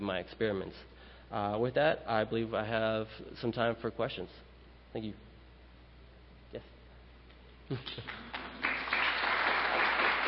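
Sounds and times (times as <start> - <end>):
speech: 0.0 - 5.3, 6.5 - 6.7, 7.7 - 8.4
audience clapping after a talk: 7.7 - 10.2.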